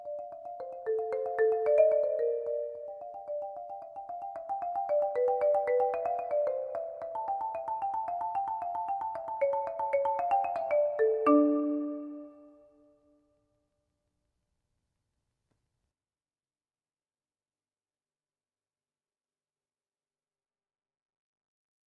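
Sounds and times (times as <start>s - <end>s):
keyboard: 0.0s - 12.9s.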